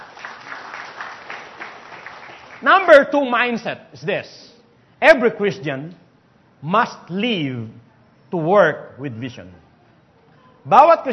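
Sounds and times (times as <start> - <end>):
congregation clapping for the Lord during a church service: 0.0 - 3.2
speech: 2.6 - 6.0, 6.6 - 9.6, 10.6 - 11.1.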